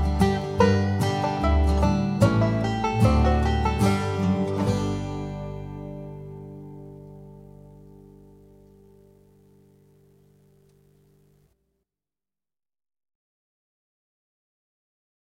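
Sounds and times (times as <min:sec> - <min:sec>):
banjo solo: 0:00.0 - 0:09.8.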